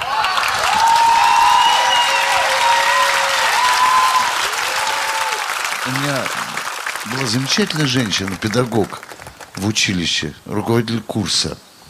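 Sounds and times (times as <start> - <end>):
audience applause: 0.0 - 10.3
speech: 7.1 - 11.7.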